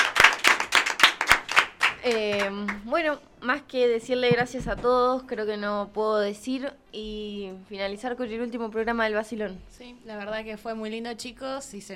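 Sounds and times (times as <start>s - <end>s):
applause: 0.0s - 2.8s
speech: 2.0s - 11.9s.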